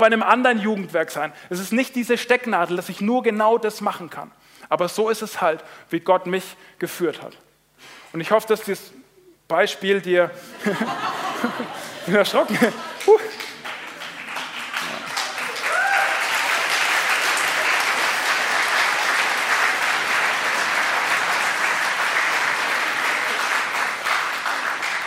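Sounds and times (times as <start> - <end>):
speech: 0.0 - 13.4
laughter: 10.5 - 13.6
audience applause: 12.4 - 25.0.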